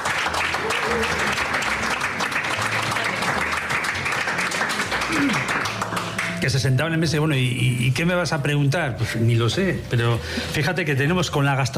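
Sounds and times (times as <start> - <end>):
audience applause: 0.0 - 6.4
speech: 6.4 - 11.7.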